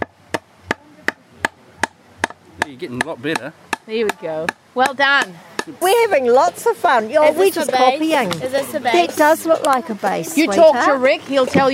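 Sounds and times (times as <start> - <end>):
child hammering: 0.0 - 5.8
speech: 2.7 - 11.7.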